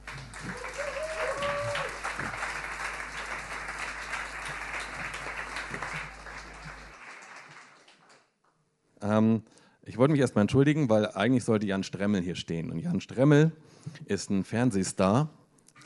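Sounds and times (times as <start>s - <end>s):
audience applause: 0.0s - 8.3s
speech: 9.1s - 15.8s.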